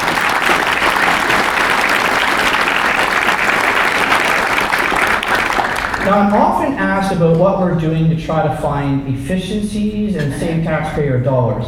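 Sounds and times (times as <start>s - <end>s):
audience applause: 0.0s - 6.6s
speech: 6.1s - 11.6s.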